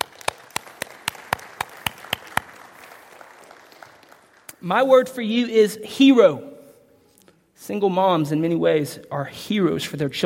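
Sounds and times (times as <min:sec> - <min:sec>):
audience clapping: 0:00.0 - 0:05.1
speech: 0:04.6 - 0:06.5, 0:07.7 - 0:10.2.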